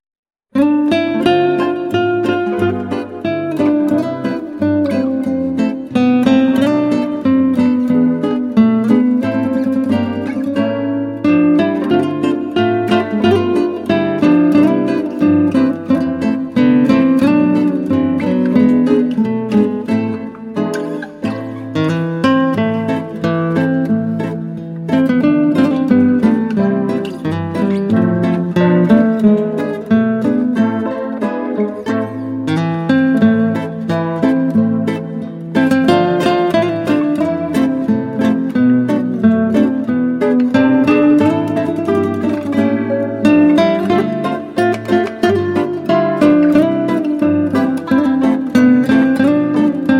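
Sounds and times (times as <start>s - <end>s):
guitar: 0.5s - 49.9s.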